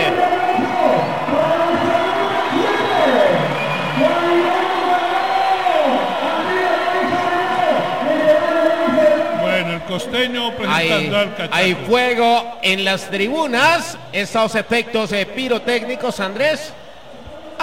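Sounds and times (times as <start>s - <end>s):
stadium crowd clapping: 0.0s - 9.6s
speech: 11.0s - 16.8s.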